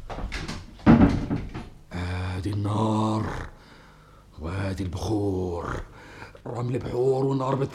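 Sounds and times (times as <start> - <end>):
door being closed in an Egyptian radio drama: 0.3 - 1.8
speech: 2.4 - 3.5, 4.4 - 5.9, 6.4 - 7.7.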